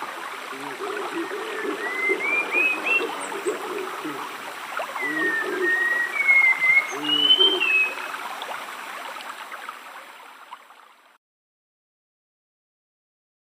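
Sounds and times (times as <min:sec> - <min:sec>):
rainforest stream flowing: 0:00.0 - 0:11.2
spot-winged thrush singing: 0:00.4 - 0:08.1.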